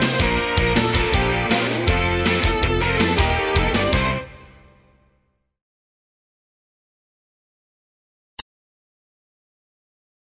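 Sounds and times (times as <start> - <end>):
intro music: 0.0 - 5.1.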